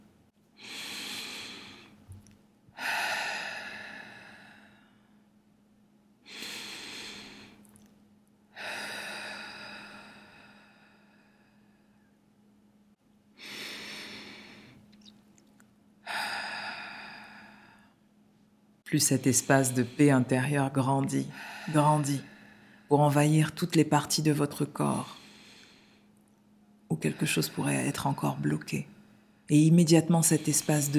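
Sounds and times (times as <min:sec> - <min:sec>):
deep breathing during a guided meditation: 0:00.6 - 0:02.1, 0:02.8 - 0:05.3, 0:06.2 - 0:07.7, 0:08.5 - 0:12.2, 0:13.4 - 0:14.9, 0:16.0 - 0:18.0, 0:21.3 - 0:22.9, 0:25.1 - 0:26.1
speech: 0:18.9 - 0:22.3, 0:22.9 - 0:25.2, 0:27.0 - 0:28.9, 0:29.5 - 0:30.9.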